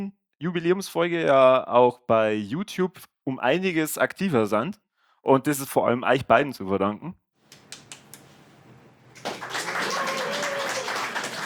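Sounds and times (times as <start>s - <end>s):
speech: 0.0s - 7.2s
applause from several people: 9.2s - 11.4s.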